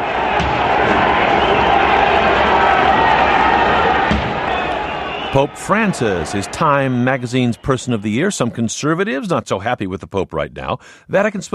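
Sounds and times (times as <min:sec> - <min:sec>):
thousands of protesters cheering in the center of Kiev: 0:00.0 - 0:08.8
speech: 0:05.4 - 0:11.5.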